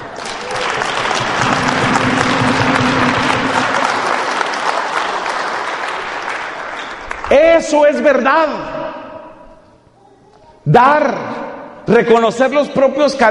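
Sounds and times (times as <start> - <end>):
audience applause: 0.0 - 7.3
speech: 7.6 - 8.7, 10.7 - 13.3.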